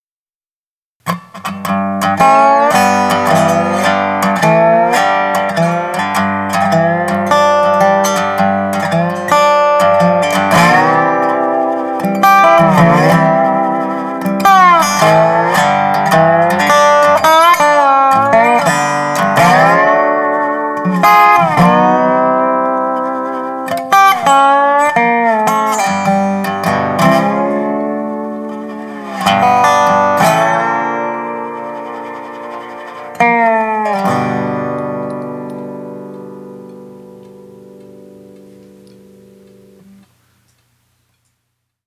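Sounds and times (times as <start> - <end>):
dobro sound effects: 1.1 - 40.1.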